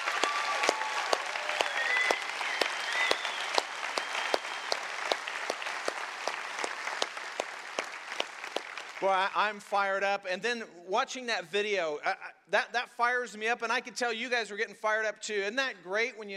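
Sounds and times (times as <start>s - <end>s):
church congregation applauding to welcome a second campus: 0.0s - 9.7s
speech: 9.0s - 16.3s.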